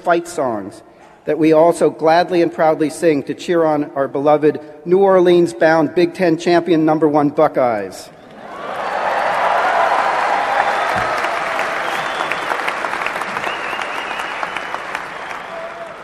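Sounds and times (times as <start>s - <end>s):
speech: 0.0s - 8.7s
crowd applause: 8.2s - 16.0s.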